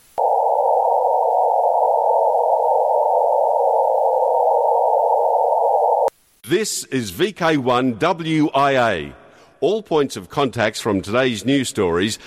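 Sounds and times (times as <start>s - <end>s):
Doppler-shifted radio echo from Mars, midrange hissing static: 0.0s - 6.5s
speech: 6.5s - 12.2s.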